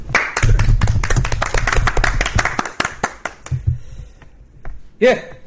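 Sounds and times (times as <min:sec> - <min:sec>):
hosts clapping: 0:00.1 - 0:03.6
speech: 0:05.0 - 0:05.3.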